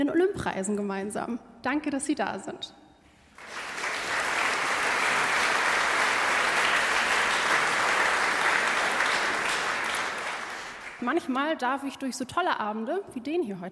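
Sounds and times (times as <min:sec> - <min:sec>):
speech: 0:00.0 - 0:02.8, 0:11.0 - 0:13.7
audience applause: 0:03.4 - 0:11.2.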